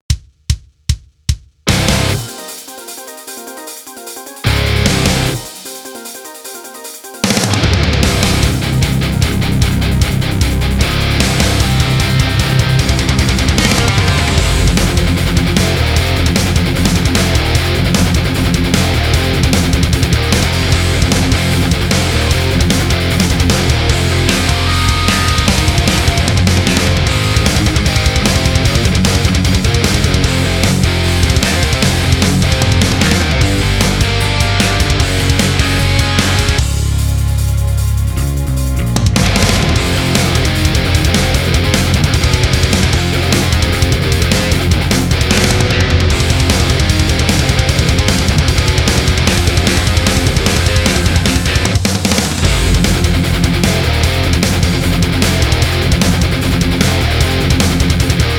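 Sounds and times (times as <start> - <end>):
boss theme backing track: 1.3 - 58.3.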